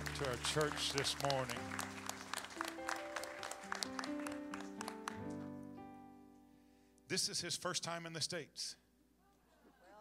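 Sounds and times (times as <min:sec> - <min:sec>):
audience applause: 0:00.0 - 0:05.4
speech: 0:00.2 - 0:01.8, 0:07.1 - 0:08.8.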